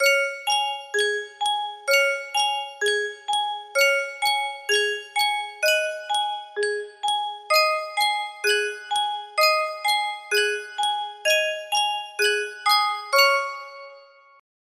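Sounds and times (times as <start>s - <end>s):
Sankyo music box melody: 0.0s - 14.4s.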